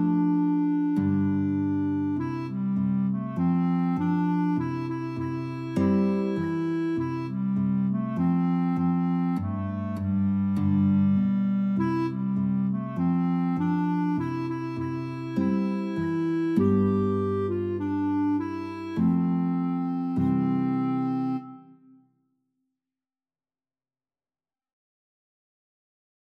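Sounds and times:
guitar in a duet: 0.0 - 22.0
clarinet in a duet: 0.0 - 22.1.

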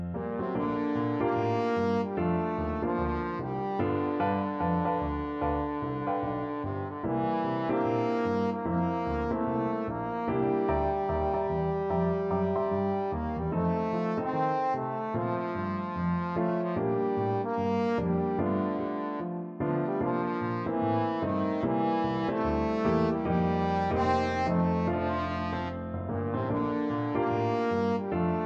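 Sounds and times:
trombone: 0.1 - 28.4.

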